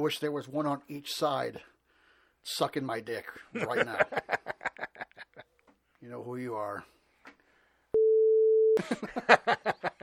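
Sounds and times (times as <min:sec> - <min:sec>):
speech: 0:00.0 - 0:01.7, 0:02.4 - 0:04.4, 0:06.0 - 0:07.0, 0:08.8 - 0:10.0
laughter: 0:03.5 - 0:05.6, 0:08.8 - 0:10.0
censorship bleep tone: 0:08.0 - 0:08.8.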